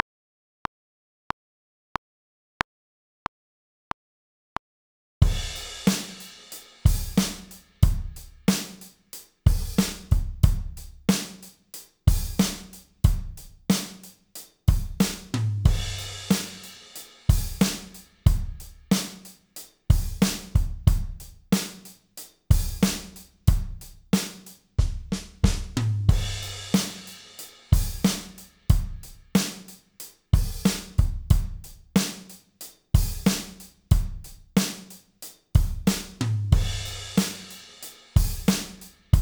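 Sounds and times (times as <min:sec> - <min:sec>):
drum: 0:05.2 - 0:32.4, 0:33.0 - 0:35.0, 0:35.6 - 0:39.1.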